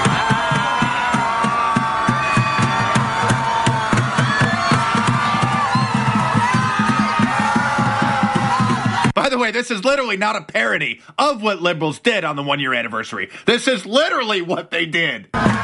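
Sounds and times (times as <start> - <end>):
crowd screaming into the sky: 0.0 - 9.2, 15.3 - 15.6
speech: 9.5 - 15.6.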